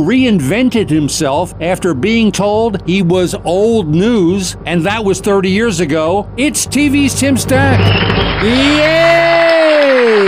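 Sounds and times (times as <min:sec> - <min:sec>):
speech: 0:00.0 - 0:10.2
crowd cheering and applause: 0:07.4 - 0:10.2
person whooping: 0:08.3 - 0:10.2.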